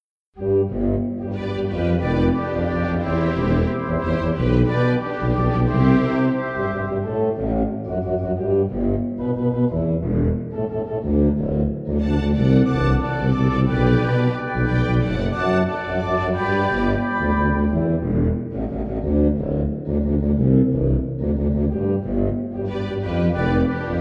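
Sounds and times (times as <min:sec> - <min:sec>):
instrumental music: 0:00.4 - 0:24.0.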